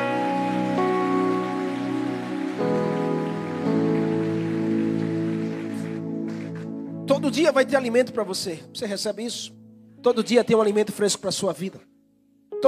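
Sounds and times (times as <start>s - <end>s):
crowd clapping: 0.0s - 7.3s
sustained keyboard chords: 0.0s - 12.6s
speech: 7.2s - 11.9s.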